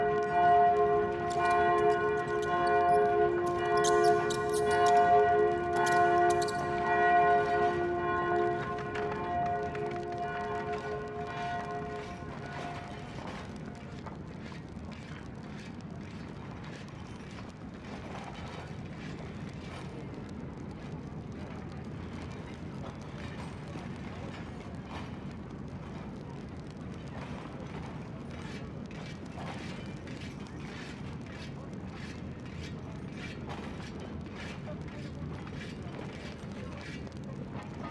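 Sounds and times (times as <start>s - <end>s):
city dungeon prison ambience: 0.0s - 13.6s.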